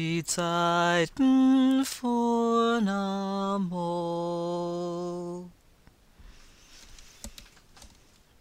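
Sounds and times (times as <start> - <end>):
tenor singing verses and refrain: 0.0 - 5.6.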